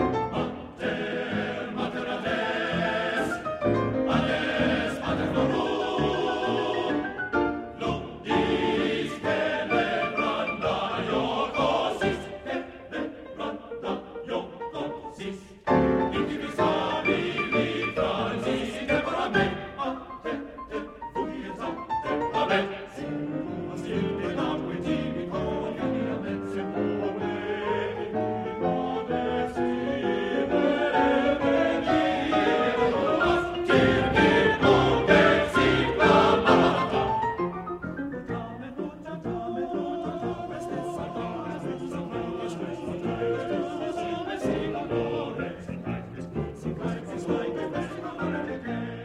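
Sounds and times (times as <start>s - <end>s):
tarantella dance music: 0.1s - 49.0s.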